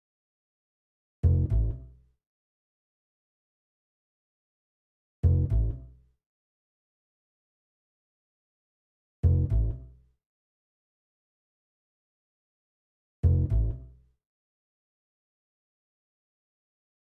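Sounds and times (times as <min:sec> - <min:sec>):
bass solo: 0:01.2 - 0:01.8, 0:05.2 - 0:05.8, 0:09.2 - 0:09.8, 0:13.2 - 0:13.8.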